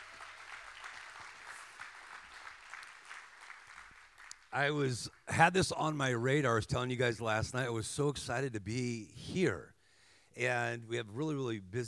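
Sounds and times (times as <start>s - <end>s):
audience clapping: 0.0s - 5.4s
speech: 4.5s - 9.7s, 10.4s - 11.8s.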